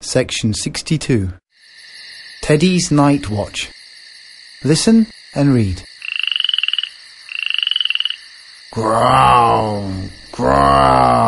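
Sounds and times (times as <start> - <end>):
speech: 0.1 - 1.4, 2.5 - 3.8, 4.6 - 5.9, 8.7 - 11.2
frog croaking: 1.5 - 11.2.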